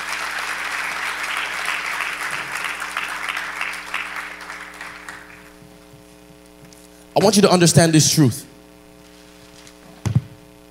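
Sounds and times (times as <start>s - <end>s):
audience clapping: 0.0s - 5.6s
speech: 7.2s - 8.5s.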